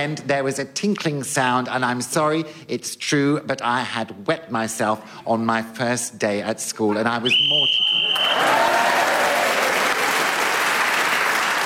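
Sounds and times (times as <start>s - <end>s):
speech: 0.0s - 9.1s
live audience applause: 8.0s - 11.6s.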